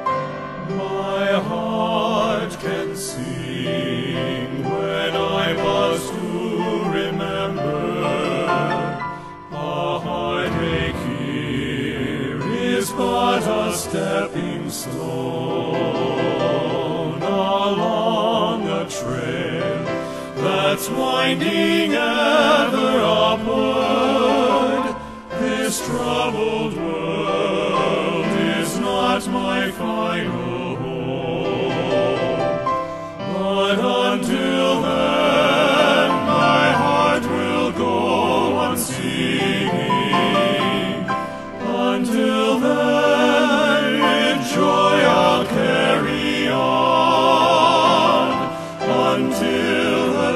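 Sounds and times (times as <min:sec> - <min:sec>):
men's chorus singing: 0:00.2 - 0:50.3.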